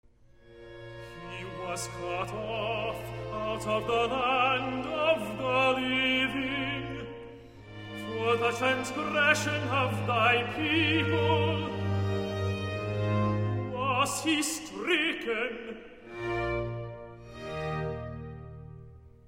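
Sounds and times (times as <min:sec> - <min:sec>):
tenor singing a recitative: 0:01.0 - 0:16.4.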